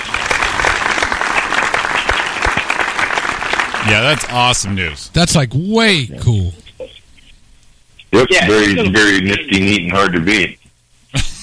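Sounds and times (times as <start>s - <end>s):
applause sound effect: 0.0s - 4.6s
speech: 3.9s - 6.6s, 8.1s - 11.2s.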